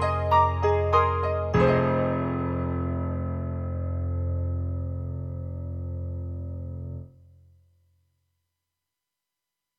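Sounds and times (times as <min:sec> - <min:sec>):
pop ballad piano sample from a Korg Triton-Rack synthesizer: 0:00.0 - 0:07.2.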